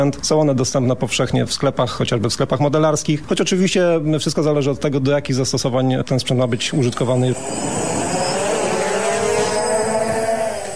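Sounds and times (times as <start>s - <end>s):
speech: 0.0s - 8.2s
civilian drone's propellers whirring during takeoff: 6.3s - 10.7s.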